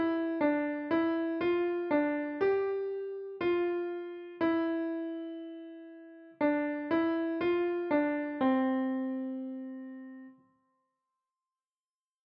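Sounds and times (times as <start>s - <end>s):
piano: 0.0s - 10.4s.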